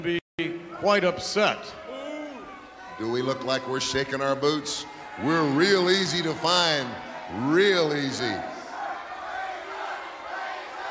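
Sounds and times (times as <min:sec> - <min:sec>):
speech: 0:00.0 - 0:01.8, 0:03.0 - 0:08.5
wrestling crowd cheering and yelling: 0:00.5 - 0:10.8.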